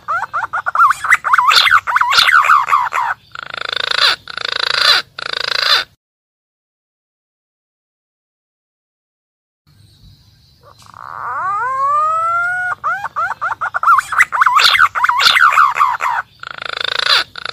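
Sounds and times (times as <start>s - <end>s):
green pigeon calling: 0.0s - 6.0s, 10.6s - 17.5s.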